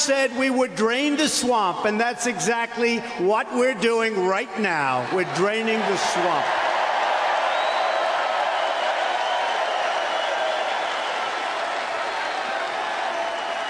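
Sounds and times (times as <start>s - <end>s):
speech: 0.0s - 6.6s
crowd clapping: 5.2s - 13.6s.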